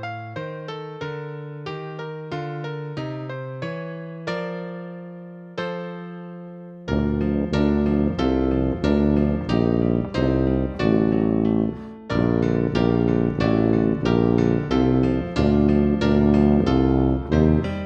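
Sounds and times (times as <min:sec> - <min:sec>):
solo melody: 0:00.0 - 0:17.8
musical accompaniment: 0:06.9 - 0:17.8.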